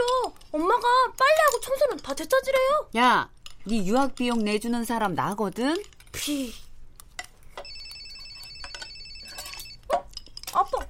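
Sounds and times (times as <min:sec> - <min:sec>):
speech: 0:00.6 - 0:06.6
mobile phone ringing: 0:07.6 - 0:09.9.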